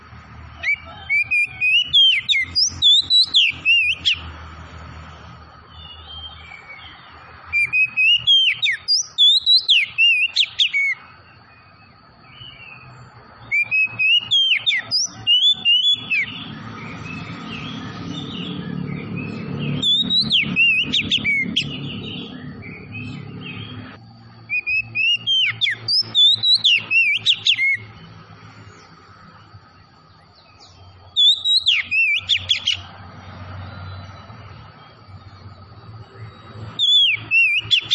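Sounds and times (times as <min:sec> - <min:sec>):
Oriental magpie-robin song: 0:00.6 - 0:04.3, 0:05.6 - 0:28.1, 0:30.0 - 0:32.9, 0:33.9 - 0:37.9.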